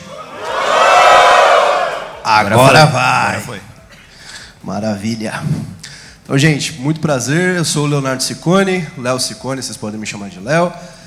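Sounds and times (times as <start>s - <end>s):
large audience shouting a greeting: 0.0s - 2.2s
speech: 2.4s - 3.7s, 4.6s - 11.0s.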